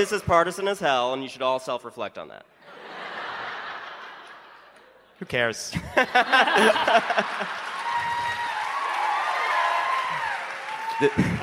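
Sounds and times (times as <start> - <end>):
speech: 0.0 - 2.8, 5.2 - 7.7, 11.0 - 11.4
laughter: 2.6 - 8.6, 11.0 - 11.4
crowd applauding and cheering: 6.2 - 11.4.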